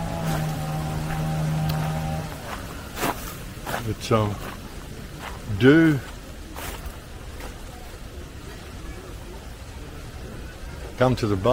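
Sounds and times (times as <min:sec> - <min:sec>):
chainsaw running: 0:00.0 - 0:03.2
speech: 0:03.9 - 0:04.5, 0:05.6 - 0:06.1, 0:11.0 - 0:11.5.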